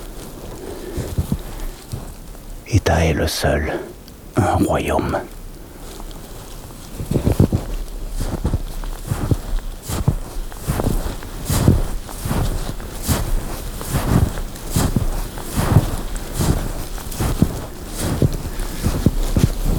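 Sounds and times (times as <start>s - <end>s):
hiss: 0.0s - 5.8s
speech: 2.7s - 5.4s
footsteps walking through snow: 7.1s - 19.7s.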